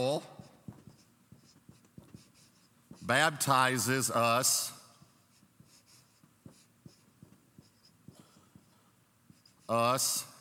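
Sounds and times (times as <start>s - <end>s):
speech: 0.0s - 0.4s, 3.1s - 4.8s, 9.7s - 10.3s
writing strokes on a board during a lecture: 0.0s - 10.3s.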